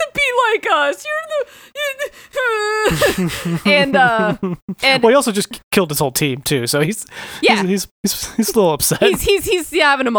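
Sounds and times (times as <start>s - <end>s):
speech: 0.6s - 10.1s
laughter: 1.0s - 5.6s, 7.1s - 9.6s
voice imitating a comic-book character bursting into tears: 1.3s - 5.2s.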